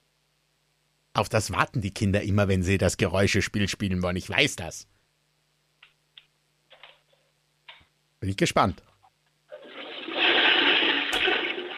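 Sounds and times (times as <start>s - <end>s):
speech: 1.2s - 4.9s, 8.2s - 8.9s
toilet flushing: 9.5s - 11.7s.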